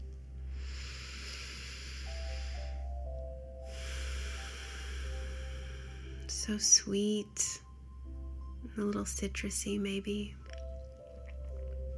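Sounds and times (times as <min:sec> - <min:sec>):
low hum: 0:00.0 - 0:11.9
person sniffing flowers with deep breaths through the nose: 0:00.5 - 0:03.0, 0:03.7 - 0:06.1
speech: 0:06.4 - 0:07.6, 0:08.8 - 0:10.4.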